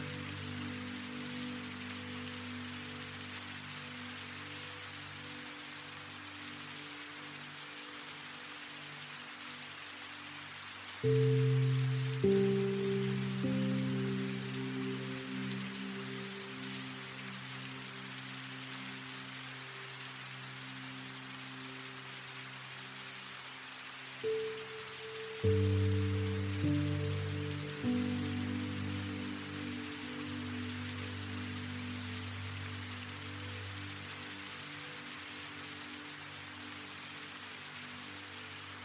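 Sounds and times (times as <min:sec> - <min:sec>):
rain: 0:00.0 - 0:38.8
relaxing music: 0:00.0 - 0:38.8.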